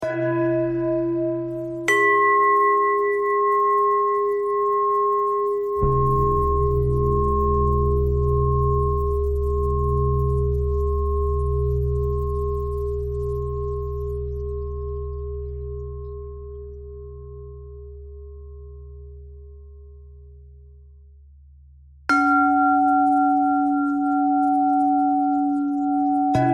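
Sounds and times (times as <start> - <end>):
pentatonic bell melody: 0.0 - 14.8, 22.1 - 26.5.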